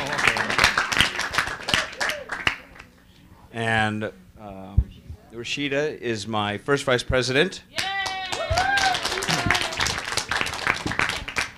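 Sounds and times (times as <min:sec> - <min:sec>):
audience clapping for an introduced vice president: 0:00.0 - 0:02.9, 0:07.8 - 0:11.5
speech: 0:03.6 - 0:07.8.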